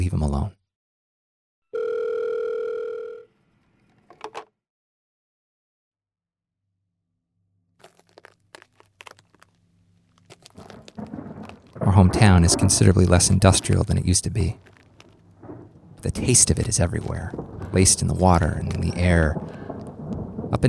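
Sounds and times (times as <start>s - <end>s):
speech: 0.2s - 0.6s, 12.0s - 14.8s, 16.0s - 19.6s
phone call ringing unanswered: 1.8s - 3.3s.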